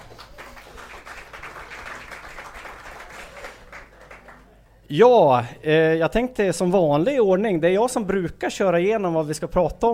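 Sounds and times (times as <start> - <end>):
audience applause: 0.0 - 4.6
speech: 4.9 - 9.9.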